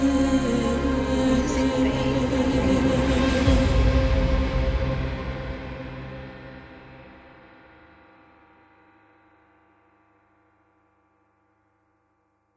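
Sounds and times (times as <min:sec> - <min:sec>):
Arabic cinematic music: 0:00.0 - 0:07.7.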